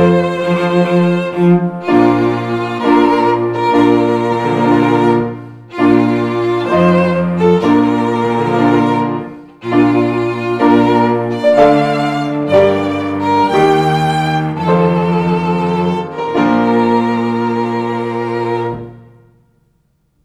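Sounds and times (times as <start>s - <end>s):
trio playing a wedding march: 0.0s - 19.0s.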